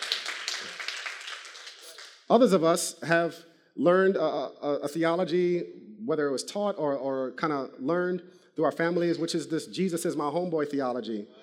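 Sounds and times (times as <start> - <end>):
soft clapping from several people: 0.0 - 2.2
speech: 2.3 - 11.4.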